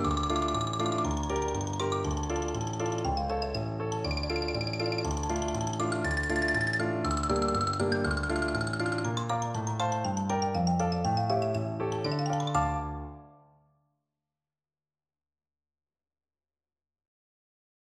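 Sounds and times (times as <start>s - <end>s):
xylophone: 0.0s - 13.3s.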